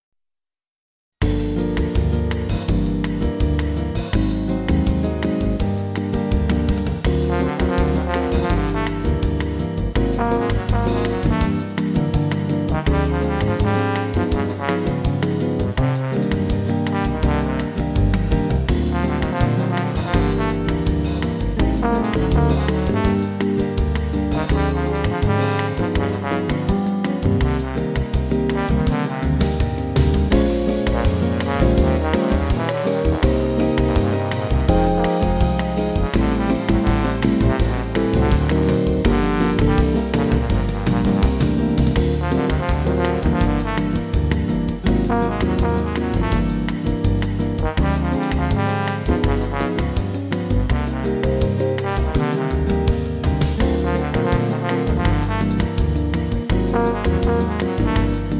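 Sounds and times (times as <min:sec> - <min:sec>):
jazz music: 0:01.2 - 0:58.3.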